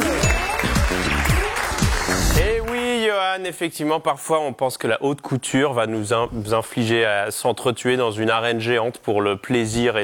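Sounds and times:
audience applause: 0.0s - 2.9s
speech: 3.4s - 10.0s.

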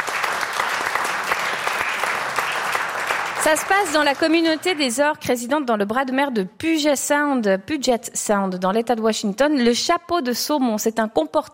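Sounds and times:
audience applause: 0.0s - 4.9s
speech: 3.4s - 11.5s.

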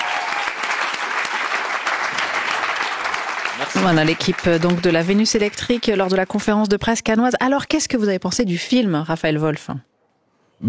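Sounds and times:
audience applauding loudly: 0.0s - 6.3s
speech: 3.6s - 9.9s.

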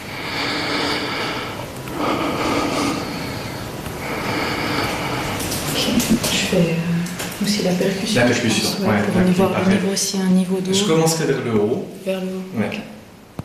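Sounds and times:
patient breathing deeply through open mouth during lung auscultation: 0.0s - 6.1s
speech: 7.6s - 12.9s.

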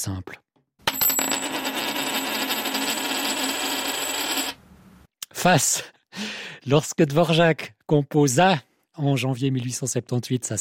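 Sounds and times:
speech: 0.0s - 0.4s, 5.4s - 10.6s
coin tossed and landing: 0.9s - 4.6s.

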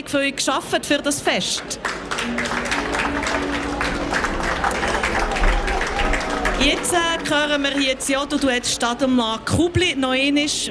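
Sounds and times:
speech: 0.0s - 2.7s, 6.6s - 10.6s
audience applause: 1.6s - 9.1s.

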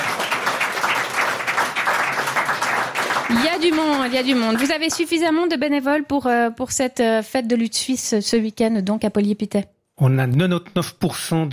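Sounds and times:
audience applause: 0.0s - 5.2s
speech: 3.3s - 11.5s.

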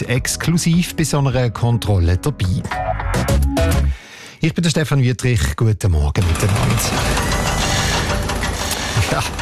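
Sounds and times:
speech: 0.0s - 7.7s, 9.1s - 9.3s
construction site mechanical rumble and grinding: 6.2s - 9.3s
metallic knocks and clanks: 6.2s - 9.3s.

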